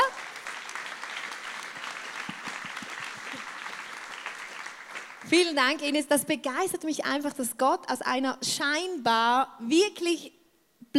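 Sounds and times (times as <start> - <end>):
applause: 0.0 - 5.9
speech: 5.3 - 10.9.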